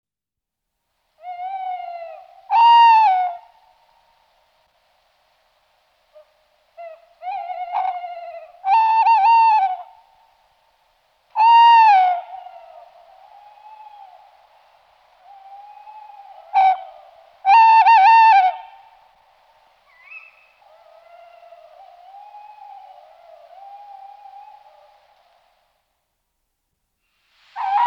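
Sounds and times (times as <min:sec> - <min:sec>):
Tawny Owl Strix aluco hooting: 0:01.2 - 0:03.5, 0:06.1 - 0:10.0, 0:11.4 - 0:19.0, 0:19.8 - 0:25.6, 0:27.6 - 0:27.8.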